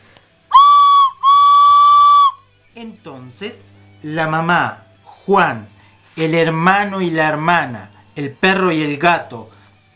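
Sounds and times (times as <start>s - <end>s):
approaching train whistle blasts: 0.5s - 2.5s
speech: 2.8s - 9.6s.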